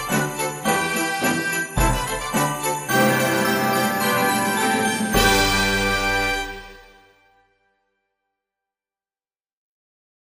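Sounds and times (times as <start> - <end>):
procession drums: 0.0 - 7.0.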